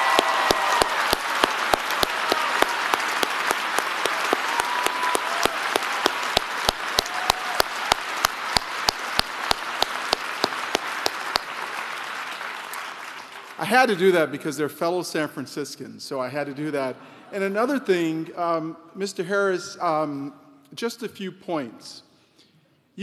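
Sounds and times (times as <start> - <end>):
sharp evenly spaced clap: 0.0 - 13.2
audience applauding: 0.0 - 14.1
speech: 13.7 - 22.1.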